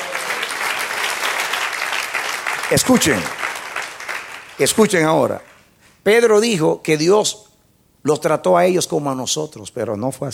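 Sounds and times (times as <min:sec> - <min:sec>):
audience applauding: 0:00.0 - 0:04.8
speech: 0:02.7 - 0:03.4, 0:04.6 - 0:07.4, 0:08.0 - 0:10.3.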